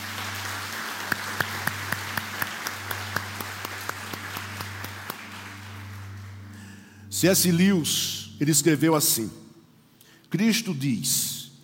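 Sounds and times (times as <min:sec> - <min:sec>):
audience applauding: 0:00.0 - 0:06.9
speech: 0:07.2 - 0:09.4, 0:10.3 - 0:11.4.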